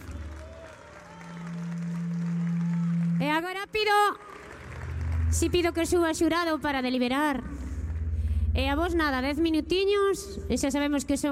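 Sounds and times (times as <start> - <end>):
audience applause: 0.0 - 3.3, 4.2 - 5.6
speech: 3.4 - 4.3, 5.3 - 7.6, 8.6 - 11.3.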